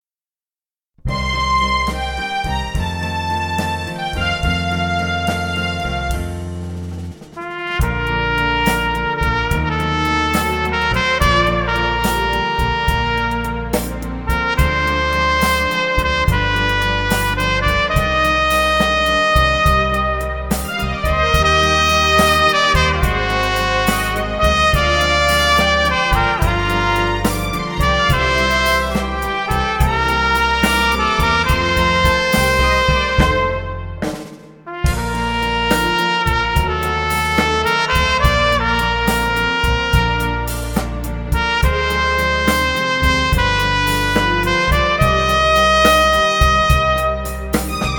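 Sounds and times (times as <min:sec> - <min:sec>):
loving trumpet: 0:01.0 - 0:47.9.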